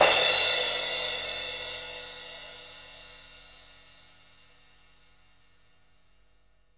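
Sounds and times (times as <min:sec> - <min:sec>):
loud drum kit crash cymbal: 0:00.0 - 0:03.8.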